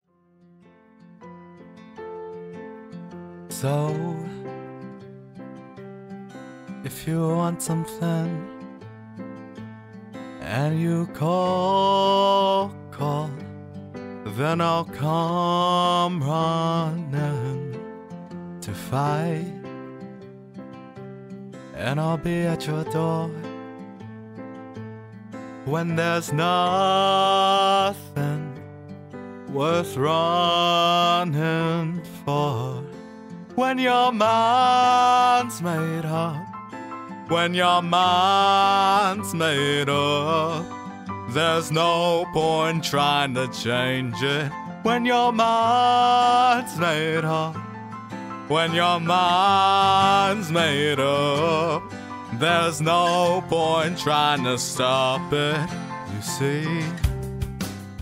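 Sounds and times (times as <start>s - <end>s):
person singing: 3.5s - 4.7s, 6.8s - 8.6s, 10.3s - 13.5s, 14.3s - 17.9s, 18.6s - 19.7s, 21.7s - 23.6s, 25.6s - 28.6s, 29.5s - 57.4s.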